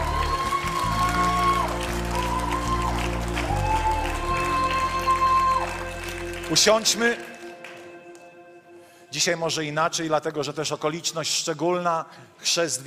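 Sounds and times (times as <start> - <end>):
audience applause: 0.0 - 7.9
speech: 6.5 - 7.3, 9.2 - 12.8.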